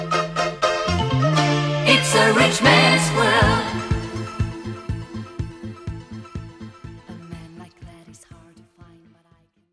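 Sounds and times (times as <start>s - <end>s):
DJ intro outro music: 0.0s - 7.2s.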